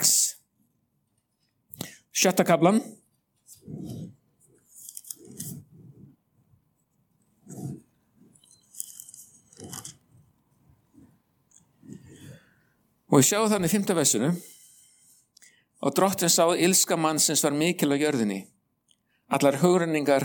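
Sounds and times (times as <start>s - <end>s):
speech: 2.2s - 3.0s, 13.1s - 14.5s, 15.8s - 18.6s, 19.3s - 20.2s
thin Bible pages flipped to the Book of Genesis: 3.4s - 6.2s, 7.6s - 10.4s.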